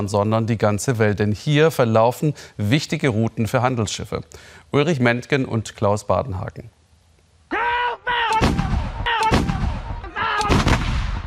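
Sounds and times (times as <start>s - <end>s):
speech: 0.0s - 6.8s
artillery shells fired during military exercise: 8.4s - 11.2s.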